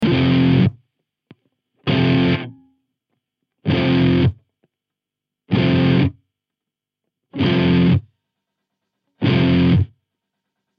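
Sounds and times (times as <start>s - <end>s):
neon guitar stops: 0.0s - 0.8s, 1.8s - 2.7s, 3.6s - 4.4s, 5.5s - 6.2s, 7.4s - 8.1s, 9.2s - 10.0s.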